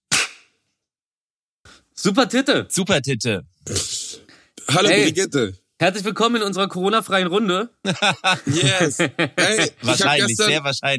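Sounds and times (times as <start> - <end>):
hand clap: 0.1 - 0.5
speech: 2.0 - 4.0, 4.7 - 10.9
laughter: 7.8 - 10.6.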